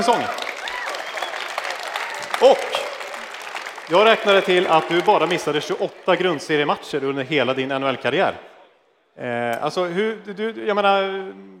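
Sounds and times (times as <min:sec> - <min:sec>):
speech: 0:00.0 - 0:00.4, 0:02.4 - 0:02.9, 0:03.9 - 0:08.5, 0:09.2 - 0:11.5
audience applauding: 0:00.0 - 0:06.4.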